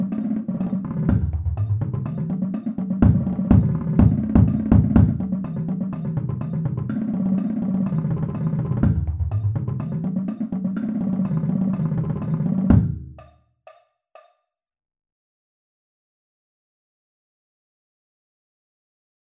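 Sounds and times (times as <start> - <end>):
bass drum at 124 bpm: 0.0 - 13.4.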